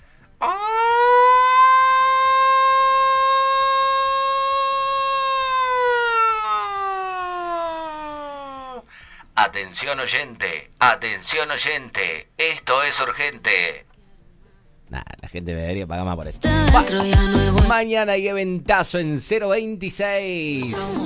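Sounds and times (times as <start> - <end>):
alarm siren: 0.4 - 8.9
speech: 9.5 - 13.9, 14.9 - 21.0.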